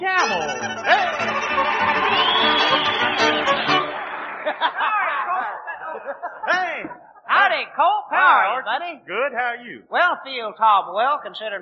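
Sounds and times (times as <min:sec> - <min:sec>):
speech: 0:00.0 - 0:01.0, 0:07.6 - 0:11.6
audience applause: 0:00.2 - 0:05.8
cheers and whoops: 0:00.8 - 0:05.5
laughter: 0:04.1 - 0:07.3.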